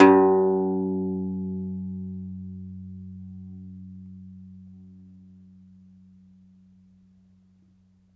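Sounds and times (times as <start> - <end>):
second domra plucked strings: 0.0 - 4.4.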